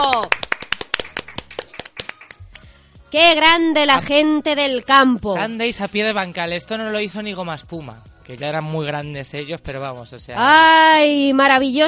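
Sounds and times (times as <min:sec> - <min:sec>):
applause, hands clapping: 0:00.0 - 0:02.7
speech: 0:03.1 - 0:11.8.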